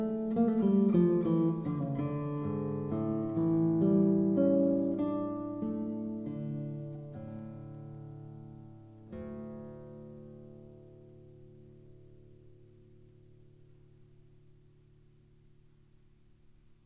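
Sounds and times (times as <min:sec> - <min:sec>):
classical guitar piece: 0:00.0 - 0:16.8.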